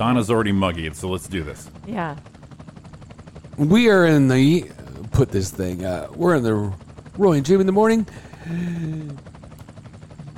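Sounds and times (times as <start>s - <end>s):
speech: 0.0s - 2.4s, 3.6s - 9.3s
helicopter engine drone and rotor blades chopping the air: 0.0s - 10.3s.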